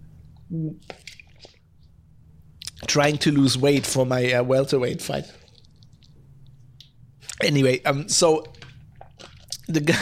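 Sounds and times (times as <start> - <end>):
person sipping and swallowing drinking water: 0.3 - 2.0, 5.2 - 7.4, 8.4 - 9.7
speech: 0.5 - 1.5, 2.9 - 5.4, 7.4 - 8.6, 9.7 - 9.9.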